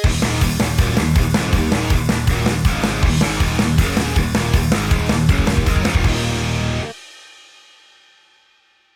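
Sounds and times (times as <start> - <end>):
metalcore logo sting: 0.1 - 6.9.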